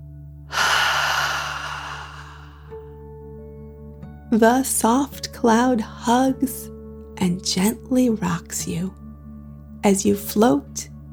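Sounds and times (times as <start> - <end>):
slow deep breathing during a guided relaxation exercise: 0.5 - 2.8
speech: 4.3 - 9.0, 9.8 - 10.9.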